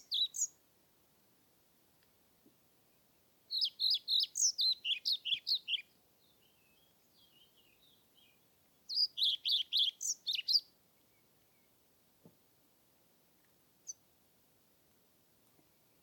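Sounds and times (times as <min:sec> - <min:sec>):
European Pied Flycatcher song: 0:03.5 - 0:11.4.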